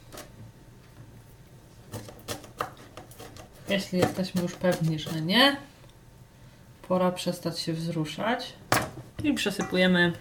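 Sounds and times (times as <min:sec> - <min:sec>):
knife finely dicing onion for meatballs in mushroom sauce: 0:01.9 - 0:05.4
speech: 0:03.7 - 0:05.7, 0:06.9 - 0:08.6, 0:09.2 - 0:10.2.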